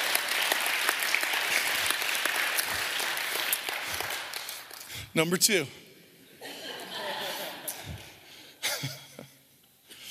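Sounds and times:
audience clapping: 0.0 - 5.0
speech: 5.2 - 5.8
laughter: 6.4 - 9.5.

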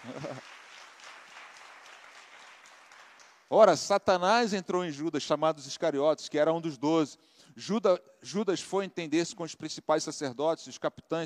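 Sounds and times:
laughter: 0.0 - 0.5
audience applauding: 0.0 - 3.5
speech: 3.5 - 11.2.

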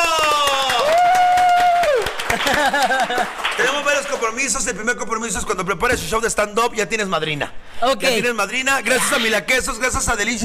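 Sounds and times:
audience applause: 0.0 - 4.3
laughter: 2.2 - 3.4
speech: 2.6 - 10.4.

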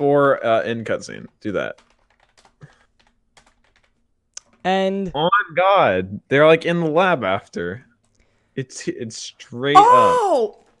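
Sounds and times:
speech: 0.0 - 1.9, 4.6 - 7.9, 8.6 - 10.6
typing a search on a keyboard: 1.4 - 4.6.

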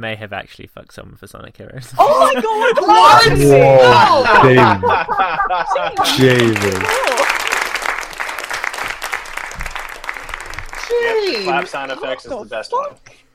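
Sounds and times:
speech: 0.0 - 7.0, 11.3 - 13.2
laughter: 1.8 - 7.7
clapping sound effect: 6.0 - 12.2.

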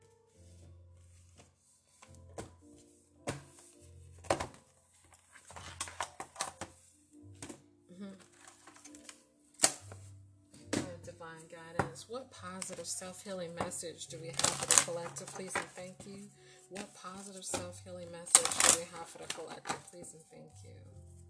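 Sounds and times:
angel cards being handled and shuffled: 3.2 - 6.8, 8.2 - 10.1, 14.3 - 17.7, 18.3 - 20.1
speech: 11.4 - 21.0.

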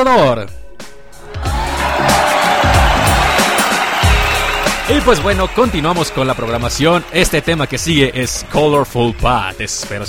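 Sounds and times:
speech: 0.0 - 0.6, 4.9 - 10.0
audience applause: 1.4 - 8.8.

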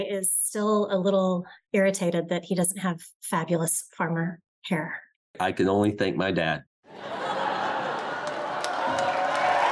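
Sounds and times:
speech: 0.0 - 7.2
studio audience laughter sound effect: 6.9 - 9.6.

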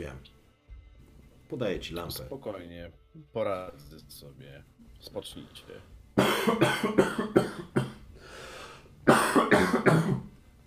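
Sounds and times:
speech: 1.5 - 7.8
person coughing harshly: 6.2 - 8.0, 9.1 - 10.3.

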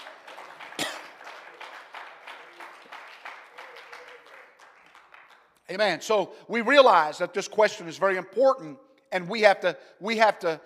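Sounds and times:
audience clapping hands: 0.0 - 6.0
speech: 5.7 - 10.6.

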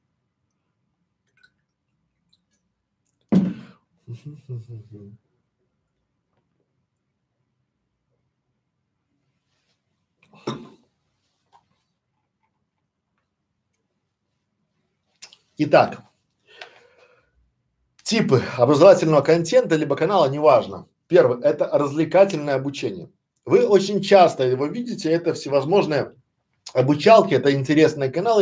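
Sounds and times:
speaker drinking water: 1.2 - 3.8
speech: 4.1 - 5.3, 15.6 - 16.1, 18.1 - 28.3.

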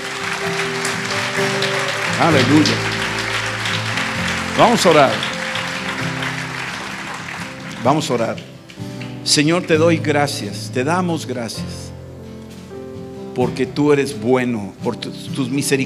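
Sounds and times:
audience applauding: 0.0 - 10.1
speech: 1.4 - 3.0, 4.6 - 5.3, 7.8 - 11.8, 13.4 - 15.8.

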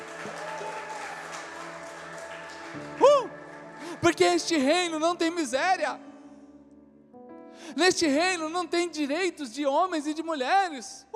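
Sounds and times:
audience clapping loudly: 0.0 - 4.6
speech: 4.1 - 6.1, 7.8 - 11.1.

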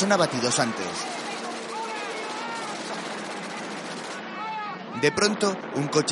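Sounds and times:
speech: 0.0 - 1.2, 5.0 - 6.1
machine-gun fire from a battle scene in the war film Kelly's Heroes: 0.0 - 4.2.

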